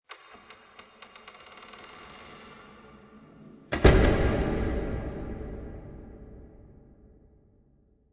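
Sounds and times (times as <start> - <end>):
heavy door creaking with reverb: 0.1 - 5.9
heavy door shutting with reverb: 3.7 - 6.4.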